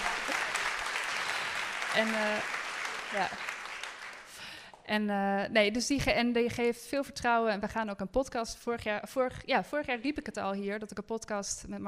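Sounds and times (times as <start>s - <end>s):
audience applauding: 0.0s - 4.6s
speech: 2.0s - 3.5s, 4.9s - 11.8s.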